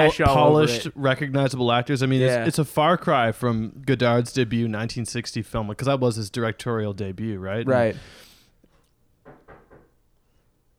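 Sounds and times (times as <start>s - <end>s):
speech: 0.0s - 8.3s
dull knocks on a door: 9.2s - 9.9s.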